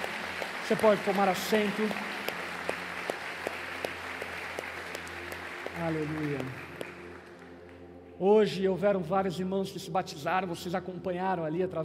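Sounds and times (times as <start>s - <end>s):
church congregation applause: 0.0s - 7.8s
speech: 0.7s - 2.1s, 5.8s - 6.6s, 8.2s - 11.8s.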